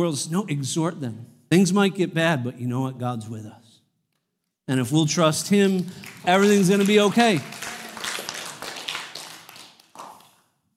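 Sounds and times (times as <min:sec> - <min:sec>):
speech: 0:00.0 - 0:03.6, 0:04.7 - 0:07.7
audience clapping: 0:05.5 - 0:10.6.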